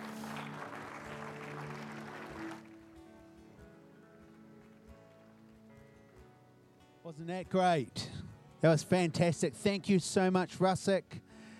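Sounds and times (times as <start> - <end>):
crowd clapping: 0.0 - 3.1, 4.2 - 6.0
speech: 7.1 - 11.2.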